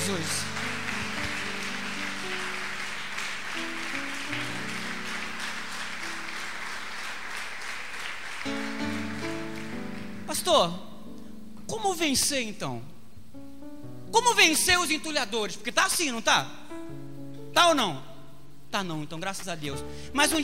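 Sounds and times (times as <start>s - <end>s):
audience applause: 0.0s - 10.3s
speech: 0.1s - 0.5s, 10.4s - 10.8s, 11.7s - 13.0s, 14.1s - 16.6s, 17.6s - 18.1s, 18.7s - 20.4s.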